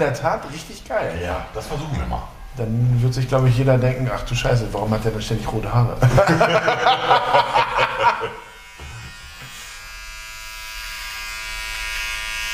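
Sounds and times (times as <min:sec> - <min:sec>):
speech: 0:00.0 - 0:08.4
laughter: 0:06.0 - 0:09.1
electric razor shaving nose hair: 0:07.1 - 0:12.5.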